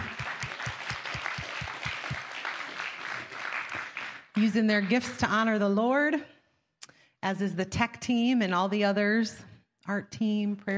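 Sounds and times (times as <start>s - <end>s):
audience clapping: 0.0s - 5.3s
speech: 4.4s - 6.4s, 7.2s - 10.7s.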